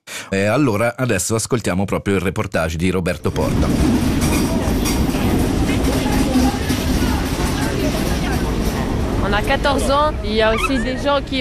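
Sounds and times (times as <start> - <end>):
speech: 0.3 - 4.5, 9.3 - 11.4
train station ambience at Bulle station: 3.2 - 11.4.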